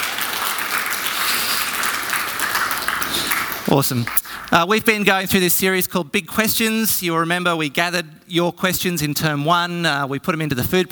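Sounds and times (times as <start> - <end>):
audience clapping: 0.0 - 4.7
speech: 3.7 - 10.8.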